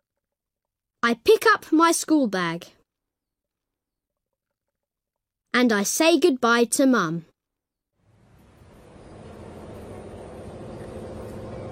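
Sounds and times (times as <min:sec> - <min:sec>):
speech: 0:01.0 - 0:02.8, 0:05.5 - 0:07.3
bus engine rumbling arriving at the stop: 0:08.1 - 0:11.6.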